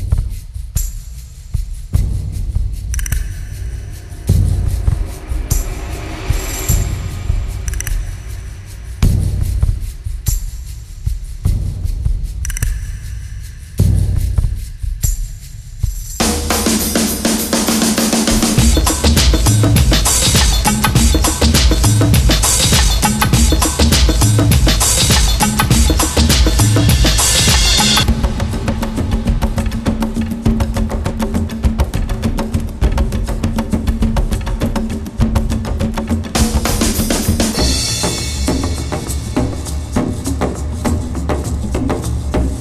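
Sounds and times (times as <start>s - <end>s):
looped drum tracks: 0.0s - 42.6s
cymbal crashes: 2.0s - 11.3s, 15.1s - 31.8s, 36.4s - 41.7s
snare drum hits: 16.2s - 29.4s.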